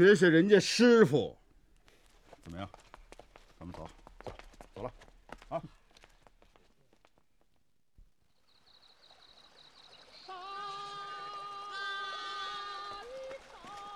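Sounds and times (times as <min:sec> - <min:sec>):
speech: 0:00.0 - 0:01.4, 0:02.4 - 0:02.8, 0:03.6 - 0:04.0, 0:04.8 - 0:05.8
flowing river water: 0:08.9 - 0:13.9.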